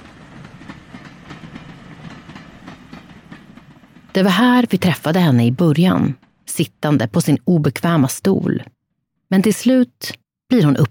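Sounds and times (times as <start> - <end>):
wheels clacking on rail joints: 0.0 - 6.7
railbus travelling on tracks: 0.0 - 8.1
speech: 4.2 - 10.9.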